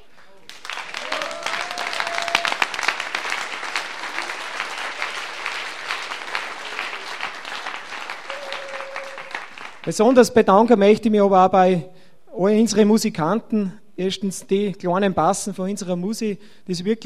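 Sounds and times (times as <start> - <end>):
audience applause: 0.0 - 9.9
speech: 9.8 - 17.0.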